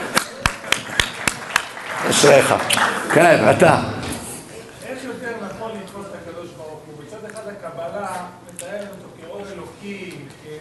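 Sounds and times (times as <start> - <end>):
audience applause: 0.0 - 4.0
speech: 2.2 - 4.0.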